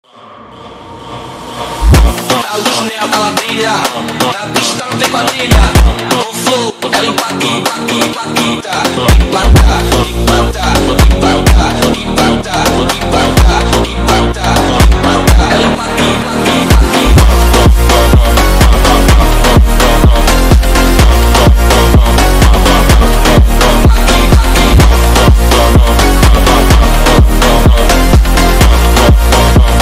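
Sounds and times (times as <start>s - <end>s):
funk music: 1.8s - 29.7s.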